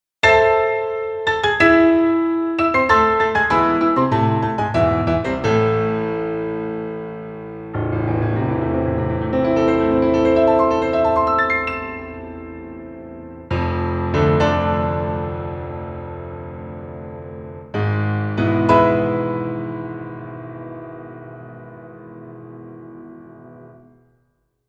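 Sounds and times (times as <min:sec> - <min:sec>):
piano concerto: 0:00.2 - 0:24.0.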